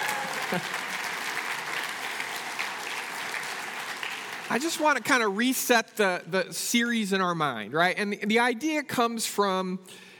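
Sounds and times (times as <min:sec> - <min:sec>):
audience applause: 0:00.0 - 0:05.5
speech: 0:00.5 - 0:00.9, 0:04.5 - 0:10.1.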